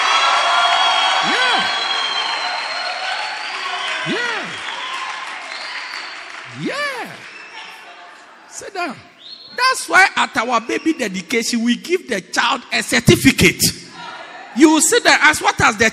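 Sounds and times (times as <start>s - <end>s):
audience clapping and shouting: 0.0s - 9.0s
speech: 8.8s - 9.1s, 9.7s - 13.8s, 14.6s - 15.9s.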